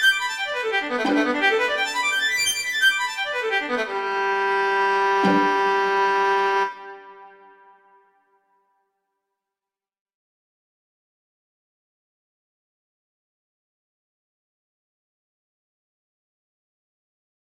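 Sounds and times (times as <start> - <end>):
arpeggios: 0.0 - 7.9.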